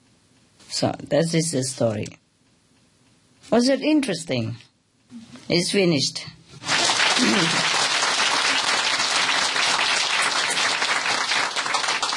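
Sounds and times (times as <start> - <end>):
speech: 0.8 - 2.2, 3.5 - 6.4, 7.2 - 7.6
audience applauding the storyteller: 6.6 - 12.1
voice murmuring: 7.2 - 7.7.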